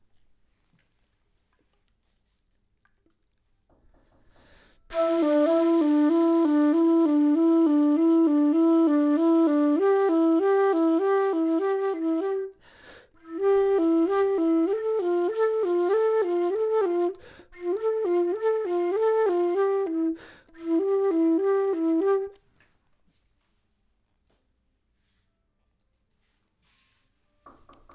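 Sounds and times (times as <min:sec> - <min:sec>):
flute: 0:04.9 - 0:22.6.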